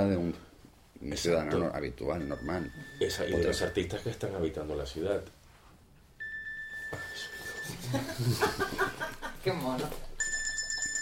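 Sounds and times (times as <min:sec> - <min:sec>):
speech: 0:00.0 - 0:05.4, 0:06.9 - 0:10.1
alarm clock ringing: 0:02.2 - 0:04.0, 0:06.2 - 0:08.0, 0:10.2 - 0:11.0
laughter: 0:07.6 - 0:09.5.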